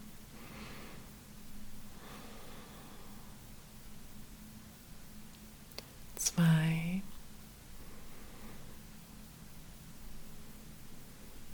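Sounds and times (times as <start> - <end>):
slow deep breathing through the nose during a guided relaxation exercise: 0.3 - 1.2, 1.9 - 3.4, 7.8 - 8.9.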